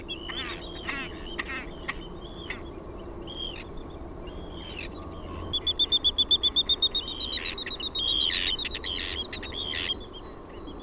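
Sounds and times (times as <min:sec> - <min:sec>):
Arctic tern calling: 0:00.0 - 0:10.8.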